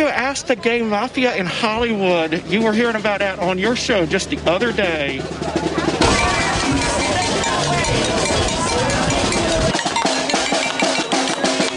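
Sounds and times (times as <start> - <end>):
speech: 0.0 - 5.9
crowd noise: 0.0 - 11.7
people shouting: 5.7 - 11.7
bell being banged by protesters: 6.0 - 11.7.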